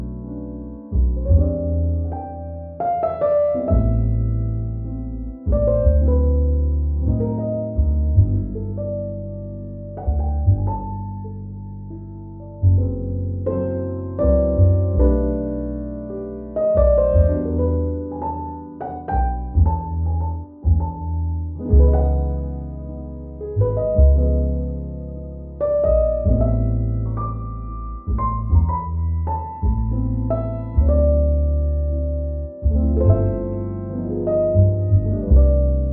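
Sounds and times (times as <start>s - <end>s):
romantic relaxing jazz music: 0.0s - 35.9s.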